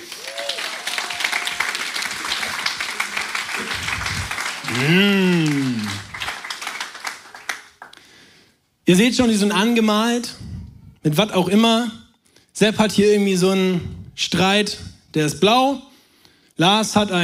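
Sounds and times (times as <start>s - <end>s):
audience applause: 0.0s - 8.0s
short rising vocal hum: 3.5s - 6.3s
speech: 4.8s - 6.0s, 8.9s - 12.0s, 12.6s - 15.9s, 16.6s - 17.2s.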